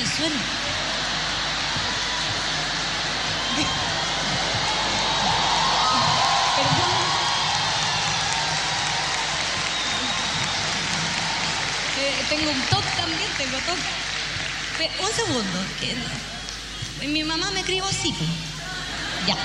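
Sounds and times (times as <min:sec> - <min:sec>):
speech: 0:00.0 - 0:00.6, 0:12.3 - 0:14.1, 0:14.8 - 0:16.4, 0:17.0 - 0:18.5, 0:19.2 - 0:19.4
audience applause and cheering: 0:00.0 - 0:19.4.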